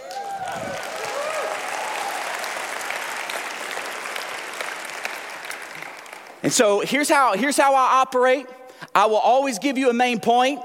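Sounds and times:
voices cheering: 0.0s - 6.1s
audience applause: 0.0s - 6.5s
speech: 6.4s - 10.6s.

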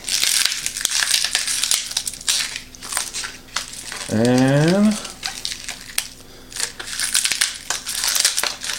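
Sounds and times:
ice cubes cracking out of tray: 0.0s - 8.7s
speech: 4.1s - 5.0s.

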